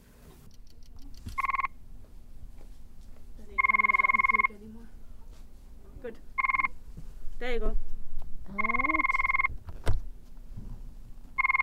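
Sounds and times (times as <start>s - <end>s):
low steady hum: 0.0s - 11.6s
frog mating calls played back: 1.4s - 1.8s, 3.6s - 4.6s, 6.4s - 6.8s, 8.5s - 9.5s, 11.4s - 11.6s.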